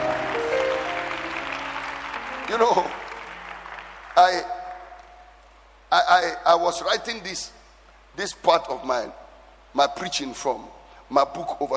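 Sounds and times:
audience clapping: 0.0s - 5.6s
speech: 2.5s - 3.0s, 4.2s - 4.6s, 5.9s - 7.6s, 8.2s - 11.7s.

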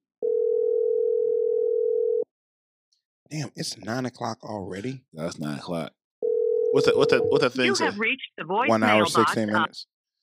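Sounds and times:
telephone dial tone of outgoing call: 0.2s - 2.2s
speech: 3.3s - 6.0s, 6.7s - 9.9s.

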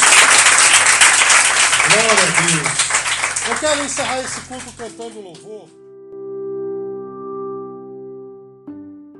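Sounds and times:
audience applause: 0.0s - 5.1s
speech: 2.0s - 2.8s, 3.4s - 5.8s.

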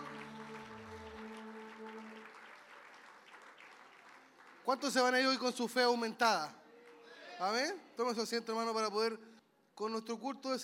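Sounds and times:
sustained organ-like tones: 0.0s - 2.5s
audience applause: 0.0s - 5.5s
speech: 4.7s - 6.6s, 7.4s - 10.6s.

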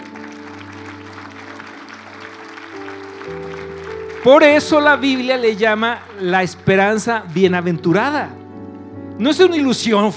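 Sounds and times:
audience applause: 0.0s - 7.9s
keyboard or organ chords: 0.0s - 10.1s
speech: 4.2s - 8.4s, 9.2s - 10.1s.

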